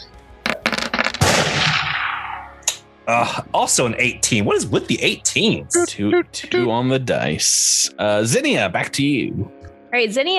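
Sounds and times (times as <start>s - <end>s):
gunshot sound effect: 0.5s - 2.5s
speech: 3.1s - 10.3s.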